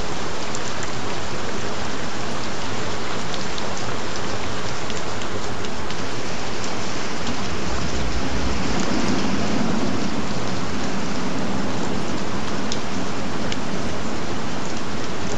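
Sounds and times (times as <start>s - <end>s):
gentle rain: 0.0s - 15.3s
thunder: 6.0s - 15.3s.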